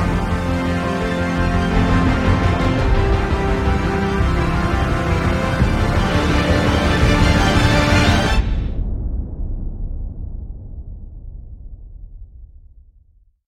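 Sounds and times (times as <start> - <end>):
atmospheric epic trailer music: 0.0 - 10.7.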